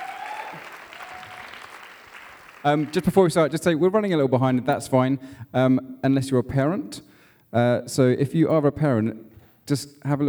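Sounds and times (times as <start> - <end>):
audience applause: 0.0 - 3.5
speech: 2.6 - 10.2.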